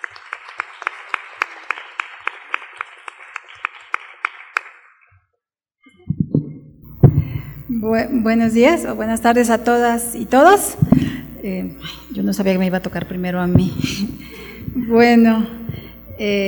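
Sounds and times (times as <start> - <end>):
audience applause: 0.0 - 5.1
speech: 7.8 - 14.2, 14.9 - 15.6, 16.2 - 16.4.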